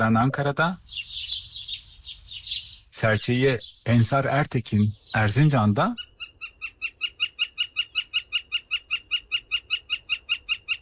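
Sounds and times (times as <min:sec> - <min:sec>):
speech: 0:00.0 - 0:01.2, 0:03.0 - 0:06.1
northern flicker woodpecker call: 0:00.8 - 0:03.0, 0:05.9 - 0:10.8.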